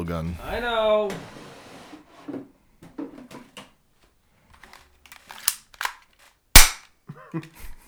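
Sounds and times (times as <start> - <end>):
speech: 0.0 - 1.4, 7.3 - 7.7
unloaded airsoft pellet gun racked and trigger pulled: 4.6 - 6.9
handling clicks: 5.1 - 6.0.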